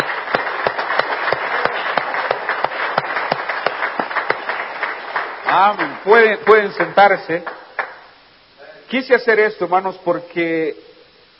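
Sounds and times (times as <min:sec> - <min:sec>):
audience applause: 0:00.0 - 0:08.0
speech: 0:05.5 - 0:07.6, 0:08.9 - 0:10.9.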